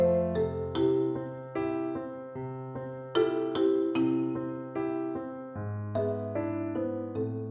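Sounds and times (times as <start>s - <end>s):
percussion: 0.0s - 2.0s, 3.2s - 5.1s, 5.8s - 7.4s.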